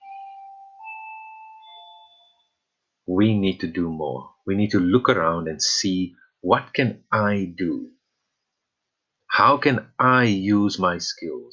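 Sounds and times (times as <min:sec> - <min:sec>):
bell ringing on Freedom Day: 0:00.0 - 0:02.6
speech: 0:03.1 - 0:08.0, 0:09.4 - 0:11.5.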